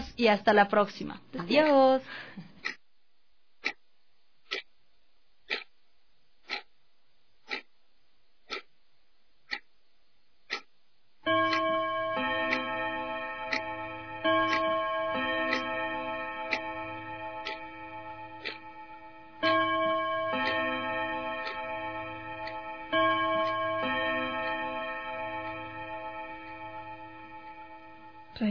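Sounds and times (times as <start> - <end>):
speech: 0.2 - 2.8
clock ticking: 1.4 - 2.9, 3.6 - 4.8, 5.4 - 5.8, 6.4 - 6.8, 7.4 - 7.8, 8.4 - 8.8, 9.4 - 9.8, 10.4 - 28.4.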